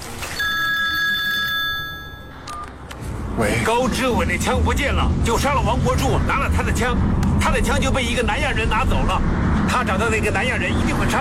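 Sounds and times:
telephone ringing with an electronic tone: 0.2s - 2.8s
speech: 3.4s - 11.2s.

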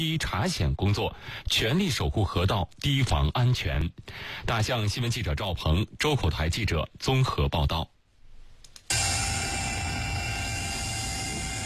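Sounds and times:
speech: 0.0s - 7.9s, 8.9s - 9.1s
drone roaring as it takes off: 8.9s - 11.6s.

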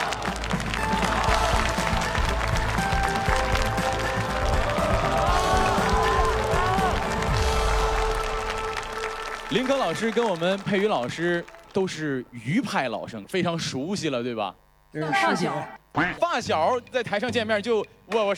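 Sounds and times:
audience applause: 0.0s - 12.4s
speech: 9.5s - 18.3s.

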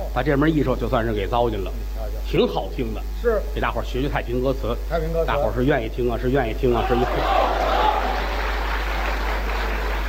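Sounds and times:
speech: 0.2s - 7.4s
audience applause: 6.9s - 10.0s.

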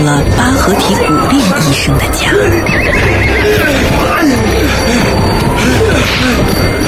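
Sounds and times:
speech: 0.0s - 5.0s, 6.1s - 6.7s
horse neighing while pulling a sleigh through snow: 2.7s - 4.1s.

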